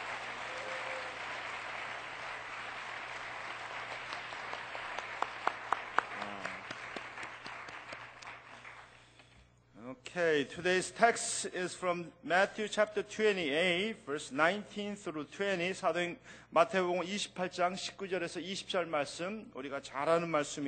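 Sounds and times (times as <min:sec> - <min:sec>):
audience applause: 0:00.0 - 0:09.0
speech: 0:10.2 - 0:20.6.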